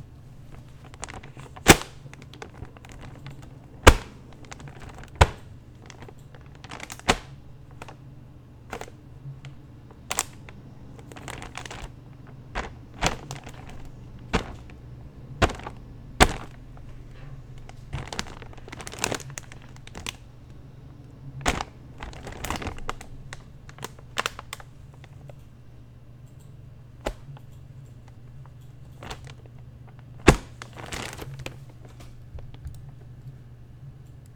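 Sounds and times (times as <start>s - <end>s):
plastic bag: 0.4s - 8.0s, 8.6s - 25.2s, 28.0s - 32.6s.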